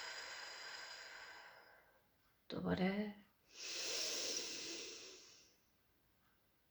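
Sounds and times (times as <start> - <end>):
slow exhale during a breathing exercise: 0.0 - 1.9, 3.5 - 5.6
speech: 2.5 - 3.8.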